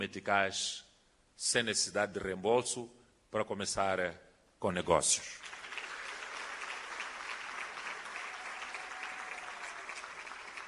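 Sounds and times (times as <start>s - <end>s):
speech: 0.0s - 5.6s
applause: 5.3s - 10.6s.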